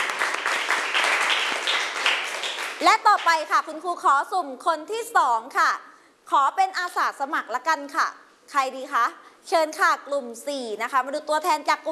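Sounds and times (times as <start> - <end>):
children in a class clapping for a classmate: 0.0 - 3.4
speech: 2.8 - 11.9.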